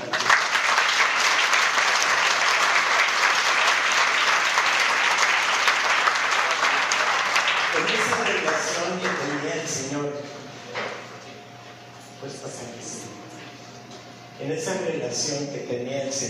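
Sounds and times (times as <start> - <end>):
audience applause: 0.0 - 9.4
speech: 14.4 - 16.2.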